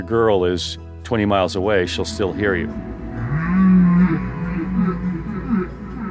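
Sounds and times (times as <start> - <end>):
speech: 0.0 - 3.0
baleen whale song: 2.9 - 6.0.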